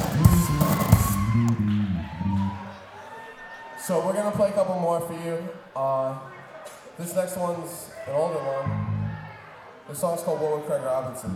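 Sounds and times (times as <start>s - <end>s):
audience applause: 0.0s - 4.1s
audience cheering: 0.0s - 11.3s
speech: 3.9s - 6.4s, 7.0s - 8.9s, 9.9s - 11.3s.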